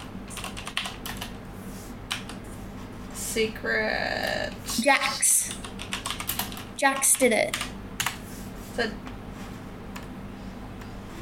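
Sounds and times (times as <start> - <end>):
computer keyboard typing: 0.0 - 1.4, 2.1 - 2.4, 5.4 - 8.2
speech: 3.4 - 5.8, 6.8 - 7.7, 8.8 - 9.1.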